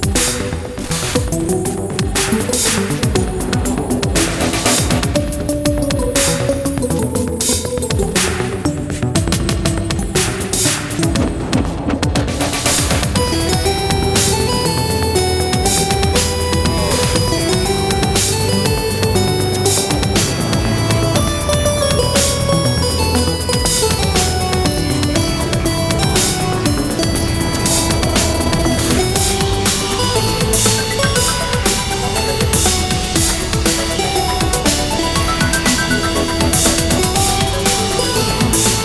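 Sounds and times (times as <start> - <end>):
synth step sequence: 0.0 - 38.8.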